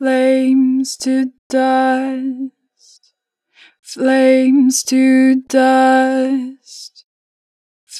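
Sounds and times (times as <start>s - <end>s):
vocals with natural vibrato: 0.0s - 3.0s, 3.6s - 7.0s.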